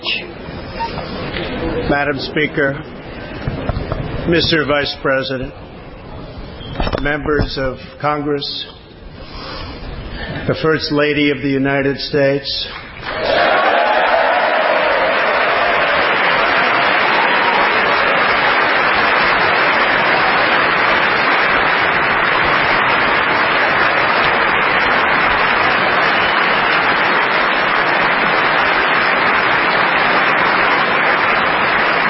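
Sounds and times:
crowd noise: 0:00.0 - 0:08.2, 0:12.8 - 0:32.0
speech: 0:01.9 - 0:03.0, 0:04.2 - 0:05.6, 0:07.0 - 0:08.8, 0:10.4 - 0:13.3
large audience applause: 0:12.8 - 0:32.0.

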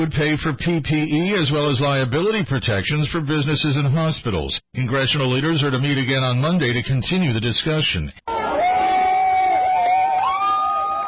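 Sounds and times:
speech: 0:00.0 - 0:08.4
person shouting or whooping: 0:08.3 - 0:11.0
protesters in Portland cheering: 0:08.3 - 0:11.0.

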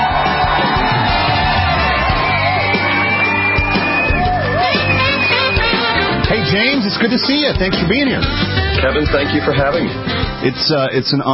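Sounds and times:
audience cheering and whooping as a guest author is welcomed: 0:00.0 - 0:06.2
speech: 0:06.9 - 0:11.3.

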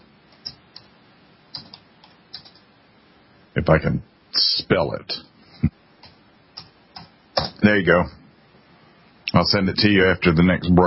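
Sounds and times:
typing on a computer keyboard: 0:00.3 - 0:02.7, 0:06.0 - 0:07.6
speech: 0:03.6 - 0:05.8, 0:07.6 - 0:08.2, 0:09.3 - 0:10.8.

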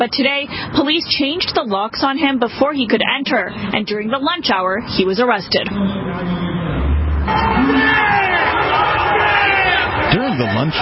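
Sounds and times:
speech: 0:00.0 - 0:06.5, 0:10.6 - 0:10.7
crowd noise outside a restaurant: 0:02.4 - 0:10.7.

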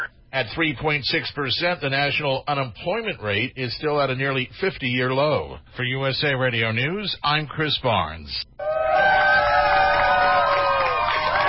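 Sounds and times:
speech: 0:00.3 - 0:08.6
crowd cheering as a gay pride rainbow flag is raised over the Wisconsin state capitol: 0:08.6 - 0:11.4.

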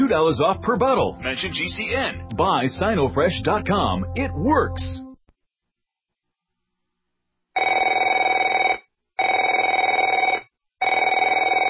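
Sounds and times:
speech: 0:00.1 - 0:05.0
telephone ringing: 0:07.6 - 0:11.6.

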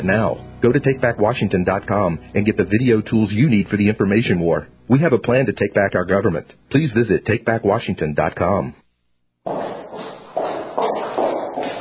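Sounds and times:
speech: 0:00.0 - 0:08.8
footsteps on a street: 0:09.5 - 0:11.8.

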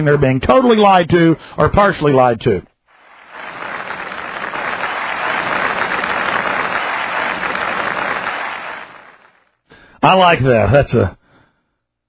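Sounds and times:
speech: 0:00.0 - 0:02.7, 0:10.0 - 0:11.2
short applause from a State of the Union speech: 0:02.9 - 0:09.5.

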